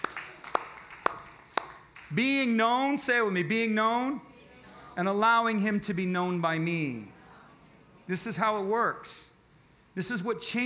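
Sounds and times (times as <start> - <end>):
audience clapping in unison: 0.0 - 2.2
speech: 2.1 - 4.3, 5.0 - 7.1, 8.1 - 9.3, 10.0 - 10.6.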